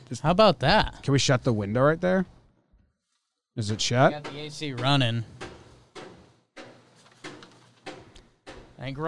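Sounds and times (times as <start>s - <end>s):
speech: 0.1s - 2.4s, 3.6s - 5.4s, 8.8s - 9.0s
hammering outside the window: 3.6s - 9.0s.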